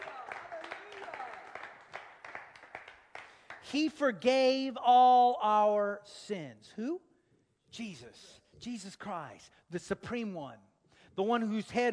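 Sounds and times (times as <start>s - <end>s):
audience clapping hands: 0.0s - 4.0s
speech: 3.7s - 7.1s, 7.7s - 11.9s.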